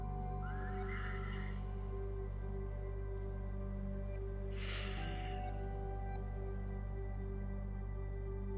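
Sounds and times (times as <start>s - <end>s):
low hum: 0.2s - 8.5s
deep breath exhaled during a guided meditation: 4.5s - 5.7s.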